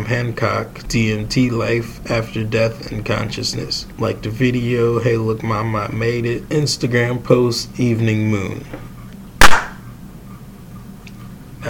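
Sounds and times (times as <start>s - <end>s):
quiet low hum: 0.0s - 11.6s
speech: 0.1s - 8.9s
single loud hand clap: 9.4s - 9.8s.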